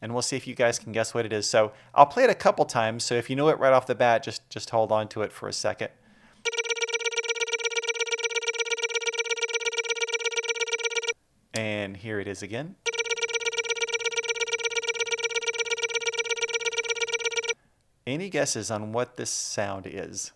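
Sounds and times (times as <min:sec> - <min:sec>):
speech: 0:00.0 - 0:06.6, 0:11.6 - 0:12.9, 0:18.1 - 0:20.3
video game Guardian enemy laser charging sound: 0:06.5 - 0:11.1, 0:12.9 - 0:17.6.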